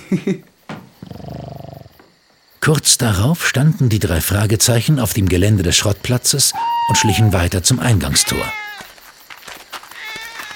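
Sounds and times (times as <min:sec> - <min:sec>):
speech: 0:00.1 - 0:00.5, 0:02.6 - 0:08.7
loud snoring: 0:00.9 - 0:02.0.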